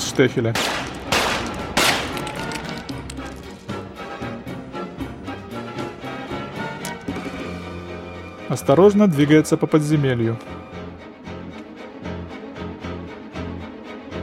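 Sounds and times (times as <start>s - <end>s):
speech: 0.2s - 0.9s, 8.5s - 10.6s
pistol shots in underground catacombs: 0.5s - 3.3s.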